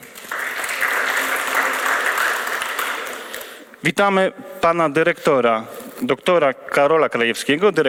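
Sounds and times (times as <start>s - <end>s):
crowd applause: 0.0s - 3.6s
speech: 3.8s - 7.8s.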